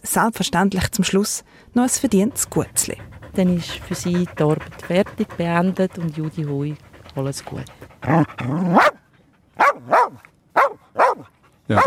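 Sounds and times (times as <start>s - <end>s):
speech: 0.2s - 9.0s, 11.7s - 11.8s
rescue dog barking: 8.1s - 9.0s, 9.6s - 11.8s.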